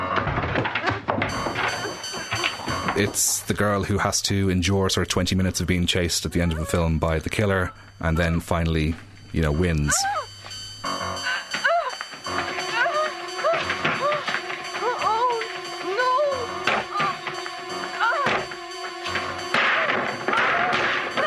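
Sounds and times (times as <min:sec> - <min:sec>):
furniture breaking and crashing: 0:00.0 - 0:03.1, 0:10.9 - 0:21.2
speech: 0:03.0 - 0:10.3.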